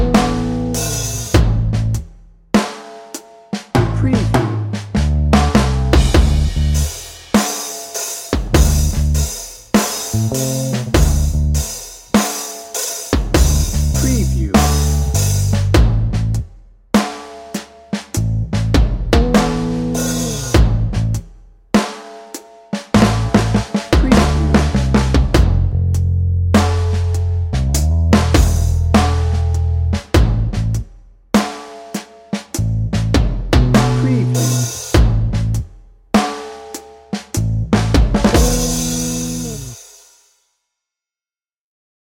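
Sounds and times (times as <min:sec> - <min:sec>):
blue collar blues music: 0:00.0 - 0:02.0, 0:03.7 - 0:16.4, 0:17.0 - 0:21.2, 0:23.0 - 0:30.8, 0:32.5 - 0:35.6, 0:37.3 - 0:39.8.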